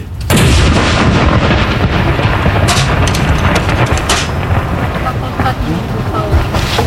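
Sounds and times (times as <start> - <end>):
ceremonial cannon salute shot: 0.2 - 6.8.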